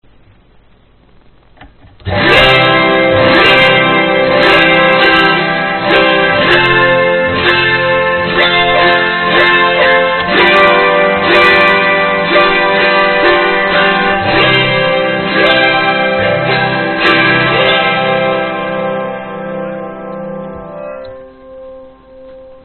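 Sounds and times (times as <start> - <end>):
72-string autoharp: 2.0 - 22.6.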